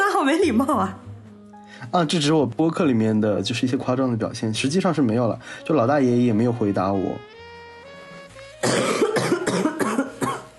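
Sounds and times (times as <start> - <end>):
speech: 0.2 - 1.0, 1.8 - 7.3
person coughing: 8.6 - 10.5.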